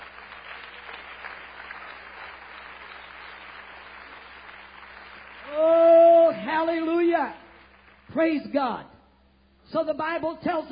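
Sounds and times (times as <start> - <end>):
audience hand clapping: 0.0 - 8.6
speech: 8.2 - 8.9, 9.7 - 10.7.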